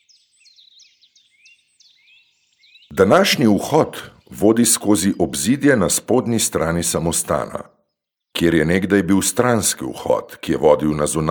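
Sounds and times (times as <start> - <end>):
birds chirping at a quiet monastery in central Europe: 0.0 - 11.2
speech: 2.9 - 7.8, 8.4 - 11.2.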